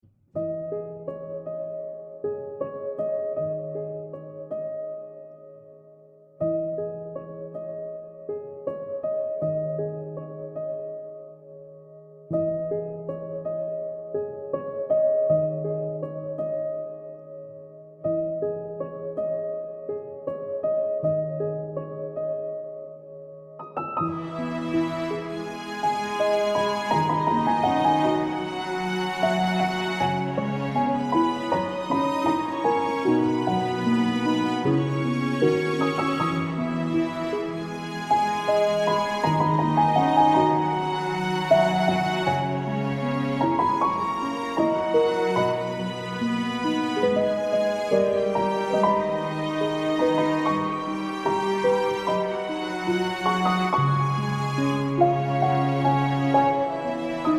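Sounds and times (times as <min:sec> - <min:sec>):
piano and strings cover: 0:00.0 - 0:57.3.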